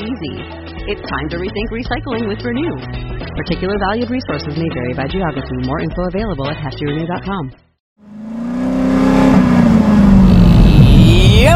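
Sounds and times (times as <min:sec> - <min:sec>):
speech: 0:00.2 - 0:07.7
car engine revving heard from inside the vehicle: 0:08.0 - 0:11.5.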